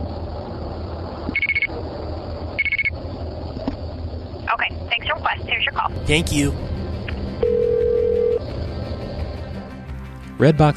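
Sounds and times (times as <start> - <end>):
low hum: 0.0 - 10.1
payphone coin tones: 1.4 - 1.7, 2.6 - 2.9
speech: 5.5 - 6.7, 10.4 - 10.7.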